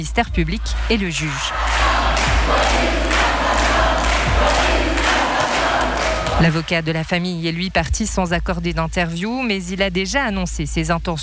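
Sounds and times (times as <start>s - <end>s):
speech: 0.0s - 3.2s, 6.4s - 11.2s
crowd booing in a courthouse: 0.6s - 6.7s.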